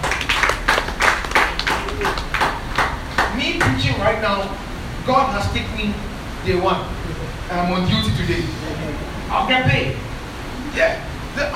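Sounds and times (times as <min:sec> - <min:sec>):
audience clapping: 0:00.0 - 0:04.1
speech: 0:04.2 - 0:10.0, 0:10.8 - 0:11.5.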